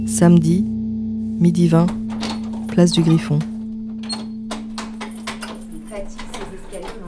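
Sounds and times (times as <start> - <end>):
speech: 0.2 - 0.7, 1.4 - 2.0, 2.7 - 3.5
key turning in a stiff door lock: 1.4 - 7.0.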